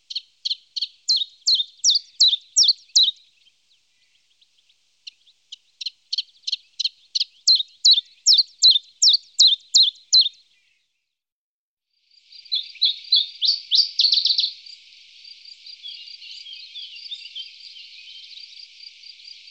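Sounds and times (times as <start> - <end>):
Common chiffchaff singing: 0.0 - 11.0, 12.2 - 19.5.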